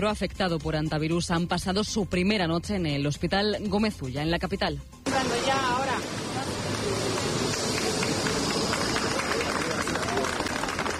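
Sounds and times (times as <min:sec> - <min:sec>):
speech: 0:00.0 - 0:06.5
crowd applauding arrivals at a hospital: 0:06.0 - 0:10.9.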